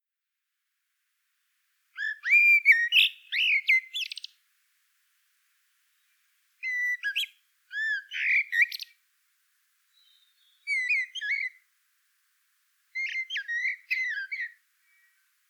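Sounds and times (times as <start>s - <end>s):
common blackbird twittering whistled notes: 2.0s - 4.3s, 6.6s - 8.9s, 10.0s - 11.6s, 13.0s - 15.2s.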